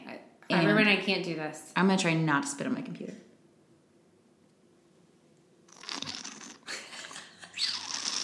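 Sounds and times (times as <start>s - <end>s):
speech: 0.9s - 3.3s
wine-tasting slurp drawing air through the lips: 5.7s - 6.7s, 7.6s - 8.2s.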